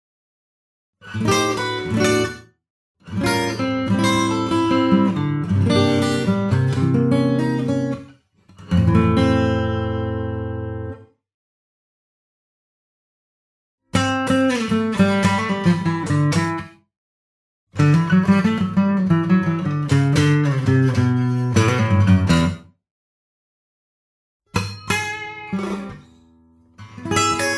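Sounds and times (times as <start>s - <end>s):
guitar: 1.0s - 11.2s, 13.9s - 16.9s, 17.7s - 22.8s, 24.5s - 27.5s.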